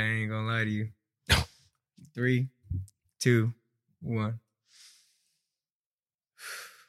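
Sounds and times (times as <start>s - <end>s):
speech: 0.6s - 1.5s, 2.2s - 4.9s
deep breath: 4.6s - 5.6s, 6.4s - 6.8s
forceful breath: 4.7s - 5.5s, 6.4s - 6.8s.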